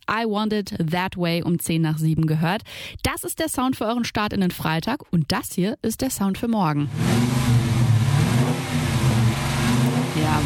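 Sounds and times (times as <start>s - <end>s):
speech: 0.1s - 7.5s
2018 black Dodge Challenger Coupé 5.7 litre V8 engine revving: 6.9s - 10.4s.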